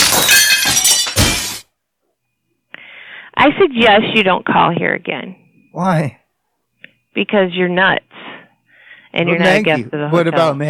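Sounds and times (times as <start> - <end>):
mirror glass shattering: 0.0 - 1.7
speech: 3.4 - 6.2, 7.2 - 8.3, 9.2 - 10.6.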